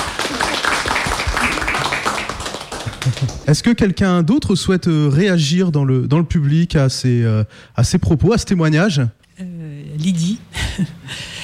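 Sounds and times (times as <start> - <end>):
audience applause: 0.0 - 3.6
speech: 3.5 - 11.2.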